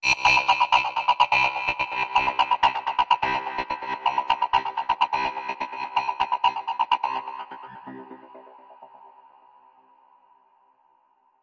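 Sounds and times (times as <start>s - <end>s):
space banjo: 0.1s - 9.0s.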